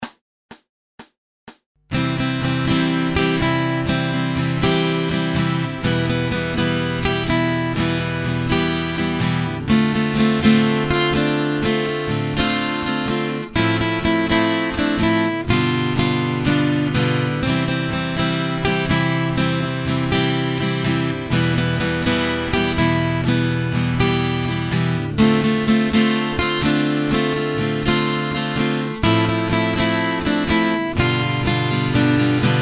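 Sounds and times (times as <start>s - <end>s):
acoustic guitar accompaniment: 1.9s - 32.6s.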